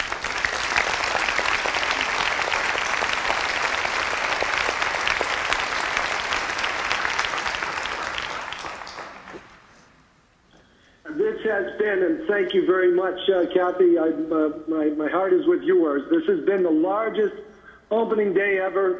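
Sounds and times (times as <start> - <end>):
large audience applause: 0.0 - 9.9
speech: 11.8 - 18.9.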